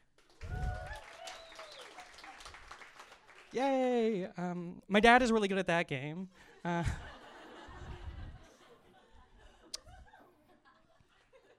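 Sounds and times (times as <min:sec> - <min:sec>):
audience applause: 0:00.0 - 0:03.6
speech: 0:03.5 - 0:07.1
laughter: 0:06.5 - 0:11.5.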